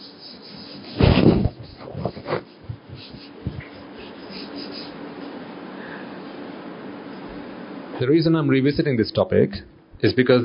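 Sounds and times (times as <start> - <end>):
marker strokes on a board while someone draws: 0.0 - 5.6
speech: 8.0 - 10.4.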